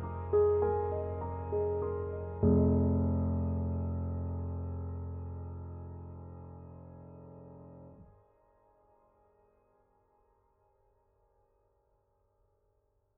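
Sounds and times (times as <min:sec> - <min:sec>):
filtered piano: 0:00.0 - 0:08.9.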